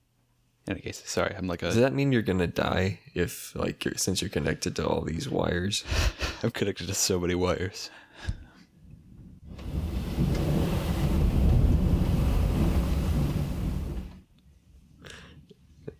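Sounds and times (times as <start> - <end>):
speech: 0.7 - 8.4
long deep rumble of thunder: 9.5 - 14.2.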